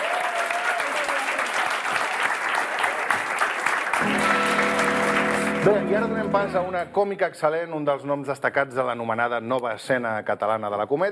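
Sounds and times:
audience applause: 0.0s - 6.1s
speech: 5.6s - 11.1s.

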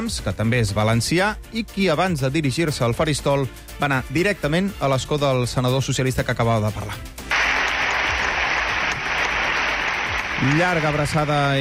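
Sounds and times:
speech: 0.0s - 7.2s, 10.4s - 11.6s
loud ovation from senators: 7.3s - 11.6s.

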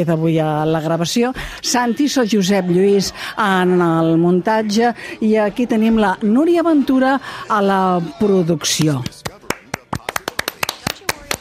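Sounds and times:
speech: 0.0s - 9.2s
hand clapping from a small group in a radio studio: 8.7s - 11.3s.

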